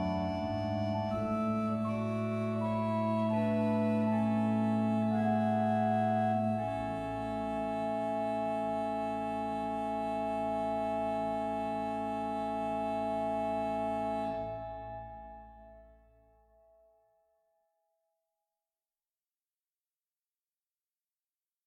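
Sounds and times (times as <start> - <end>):
organ music: 0.0 - 15.9.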